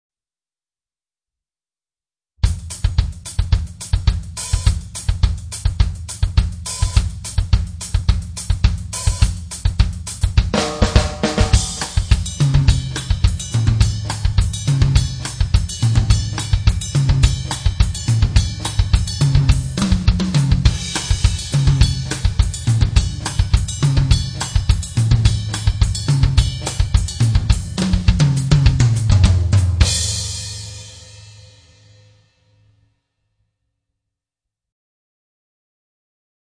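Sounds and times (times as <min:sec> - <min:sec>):
drummer playing: 0:02.4 - 0:32.0
salsa music: 0:10.6 - 0:12.4.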